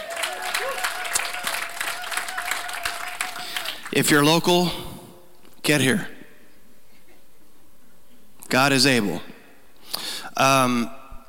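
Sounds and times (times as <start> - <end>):
in-house audience applause: 0.0 - 4.2
speech: 3.9 - 4.9, 5.6 - 6.2, 8.5 - 9.3, 10.4 - 11.0.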